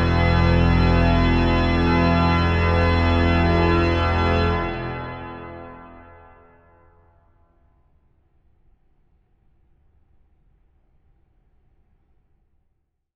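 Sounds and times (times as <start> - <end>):
majestic organ postlude in F minor: 0.0 - 7.0.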